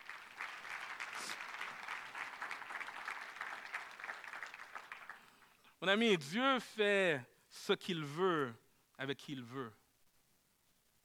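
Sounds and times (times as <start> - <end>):
audience applause: 0.0 - 5.4
speech: 5.8 - 9.8.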